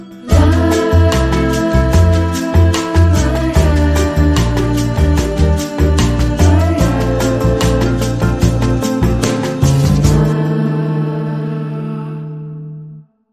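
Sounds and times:
dreamy bossa nova music: 0.0 - 12.2.

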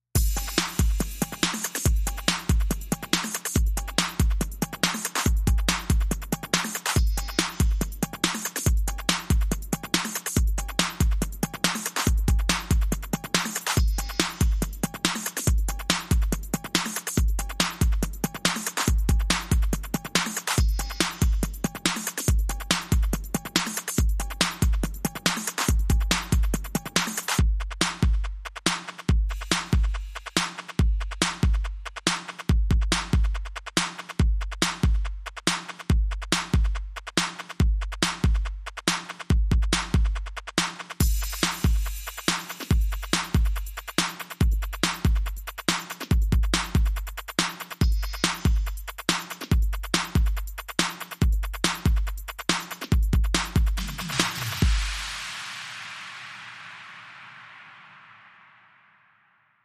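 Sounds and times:
bonus beats: 0.2 - 55.2.

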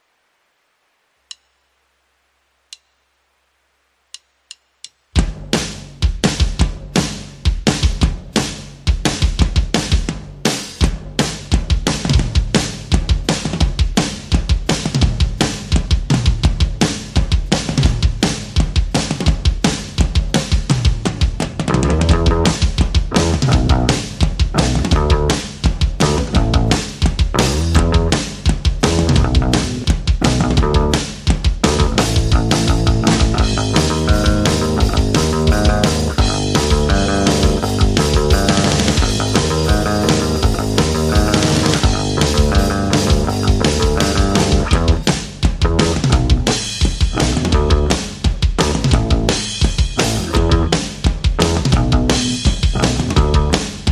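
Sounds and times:
drums: 1.1 - 53.9
bass: 5.1 - 53.9.

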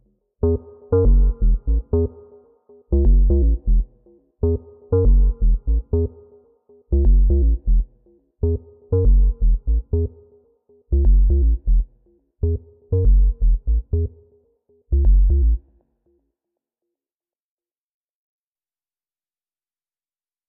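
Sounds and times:
bass underscore: 0.0 - 2.2, 2.9 - 6.2, 6.9 - 10.3, 10.9 - 14.3, 14.9 - 15.8.

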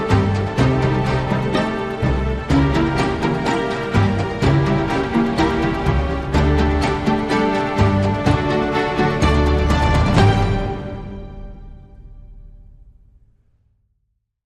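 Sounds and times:
classical tango: 0.0 - 11.1.

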